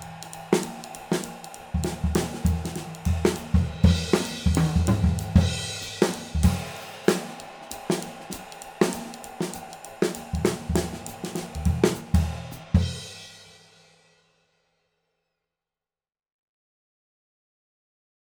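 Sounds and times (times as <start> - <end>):
18-inch Sabian Proto cymbal: 0.0 - 14.3.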